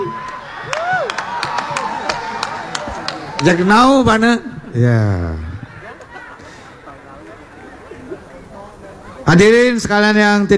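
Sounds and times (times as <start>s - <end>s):
scattered audience clapping: 0.0s - 4.0s
crowd murmur: 0.0s - 9.6s
speech: 3.4s - 5.5s, 9.3s - 10.5s.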